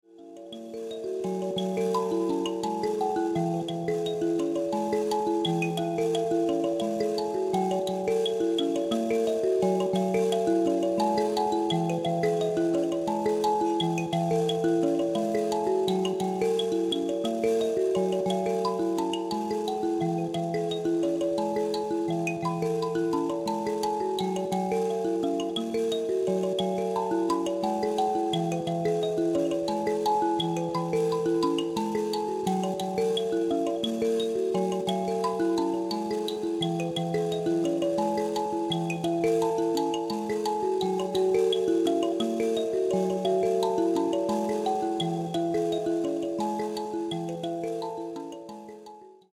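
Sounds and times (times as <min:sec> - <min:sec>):
mbira: 0:00.0 - 0:49.3.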